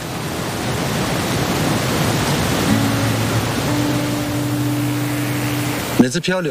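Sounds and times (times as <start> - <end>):
flowing water in mountain valley: 0.0 - 6.4
wind in mountain valley: 0.0 - 6.4
low sustained hum: 2.7 - 6.2.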